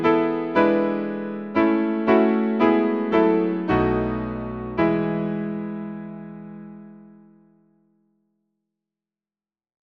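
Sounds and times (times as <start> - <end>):
hymn on piano: 0.0 - 7.4.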